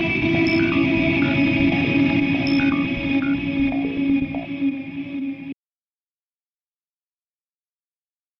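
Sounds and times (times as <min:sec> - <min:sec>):
guitar through delay reverb pedal: 0:00.0 - 0:05.6.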